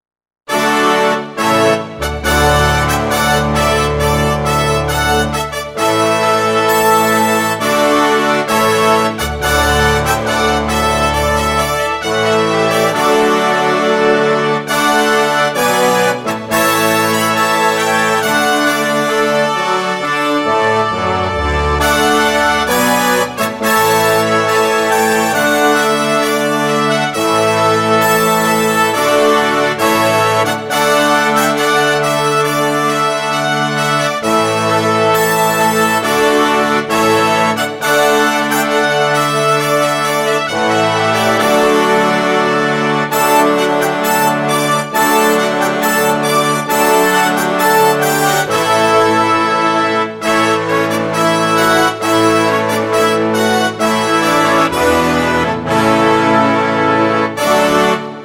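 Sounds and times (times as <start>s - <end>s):
trumpet piece: 0.5s - 58.2s.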